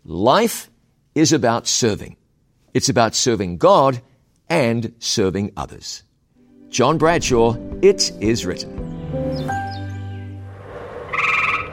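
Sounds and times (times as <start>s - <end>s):
speech: 0.1s - 2.2s, 2.8s - 6.1s, 6.7s - 8.8s
frog singing its mating call: 11.1s - 11.7s.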